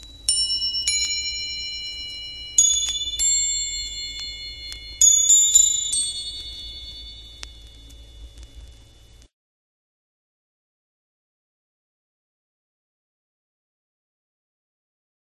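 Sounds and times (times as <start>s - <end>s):
cowbells: 0.0s - 7.8s
tubular bells: 0.0s - 8.4s
gong: 0.0s - 9.0s
vibraphone: 0.3s - 7.3s.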